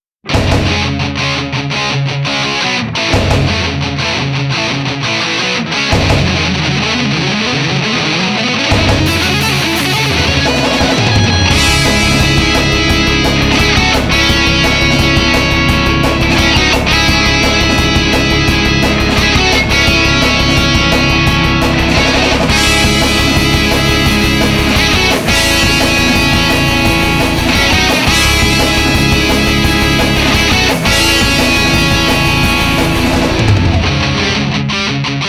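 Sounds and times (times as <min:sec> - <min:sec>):
guitar: 0:00.2 - 0:35.2.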